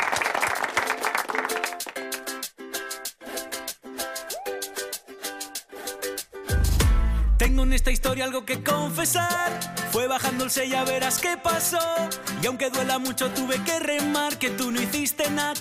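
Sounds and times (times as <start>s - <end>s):
crowd applause: 0.0s - 2.2s
upbeat music track with rhythmic chords: 0.5s - 15.5s
speech: 7.4s - 15.5s.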